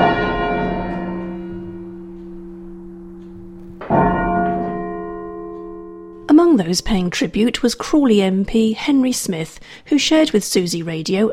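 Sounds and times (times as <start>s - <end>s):
half-muffled church bells ringing: 0.0s - 7.2s
speech: 6.6s - 11.3s.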